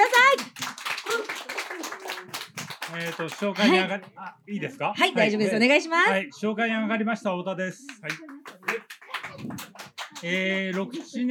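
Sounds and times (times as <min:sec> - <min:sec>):
audience applause: 0:00.0 - 0:04.1, 0:08.0 - 0:11.3
speech: 0:02.9 - 0:08.3, 0:10.2 - 0:11.3.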